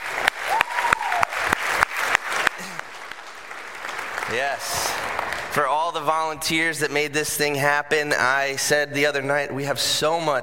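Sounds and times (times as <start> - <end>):
audience applause: 0.0 - 5.9
speech: 4.3 - 10.4.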